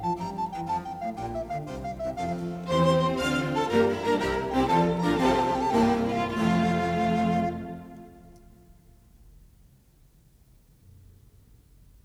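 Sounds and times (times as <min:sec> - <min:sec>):
recorder concerto: 0:00.0 - 0:08.8.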